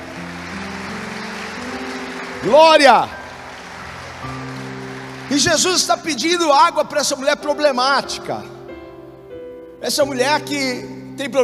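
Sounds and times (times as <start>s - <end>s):
audience applauding: 0.0s - 7.2s
speech: 2.4s - 3.2s, 5.3s - 8.6s, 9.8s - 11.4s.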